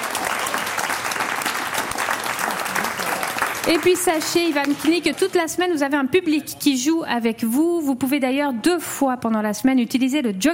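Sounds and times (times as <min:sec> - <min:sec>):
audience applause: 0:00.0 - 0:05.5
speech: 0:03.6 - 0:10.5.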